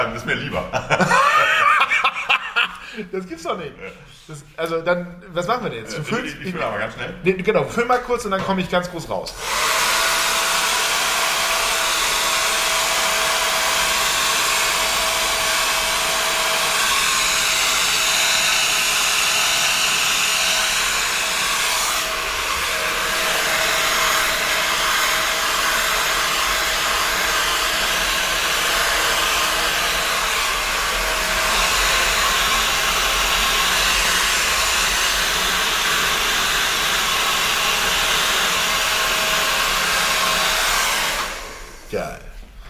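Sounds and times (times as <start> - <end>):
speech: 0.0 - 1.8, 3.0 - 9.9
laughter: 0.4 - 3.1
hair dryer blowing: 9.4 - 41.9.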